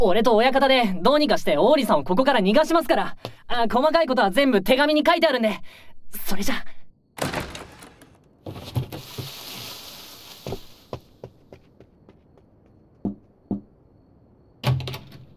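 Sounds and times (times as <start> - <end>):
speech: 0.0 - 7.4
window being opened: 7.2 - 8.2
sharp thumps: 7.2 - 8.3
soft rushing hiss: 9.0 - 11.3.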